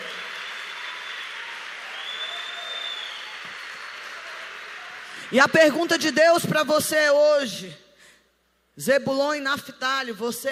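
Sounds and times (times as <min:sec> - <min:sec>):
audience applause: 0:00.0 - 0:05.4
speech: 0:05.3 - 0:07.8, 0:08.8 - 0:10.5.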